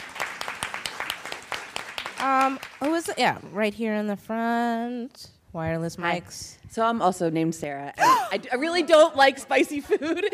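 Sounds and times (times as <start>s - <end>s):
audience applause at a talk: 0.0s - 3.4s
speech: 2.2s - 10.3s.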